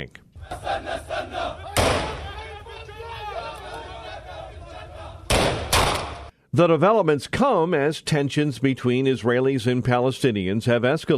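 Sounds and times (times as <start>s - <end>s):
speech: 0.0s - 1.6s, 6.6s - 11.1s
crowd shouting and chanting: 0.4s - 6.3s
gunshots fired into the air at a Palestinian militant's funeral procession in the West Bank: 1.8s - 2.4s, 5.3s - 6.3s.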